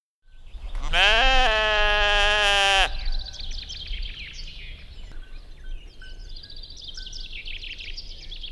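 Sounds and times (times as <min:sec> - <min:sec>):
sheep bleating: 0:00.8 - 0:03.1.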